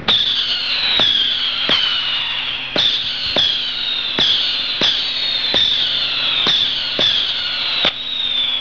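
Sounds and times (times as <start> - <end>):
firecracker bang: 0.0 - 8.5.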